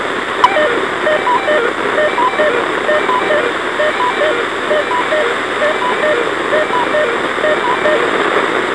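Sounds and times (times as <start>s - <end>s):
EMS dispatch tone-out: 0.4s - 8.1s.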